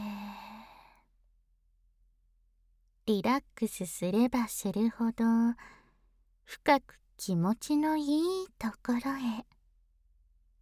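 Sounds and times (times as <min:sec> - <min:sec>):
slow voiced exhale during a guided relaxation breathing exercise: 0:00.0 - 0:01.0
speech: 0:03.1 - 0:05.8, 0:06.5 - 0:09.5.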